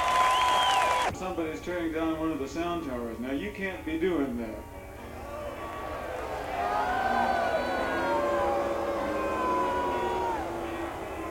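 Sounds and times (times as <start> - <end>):
crowd booing: 0.0 - 1.1, 4.6 - 11.2
speech: 1.2 - 4.9, 6.6 - 7.4.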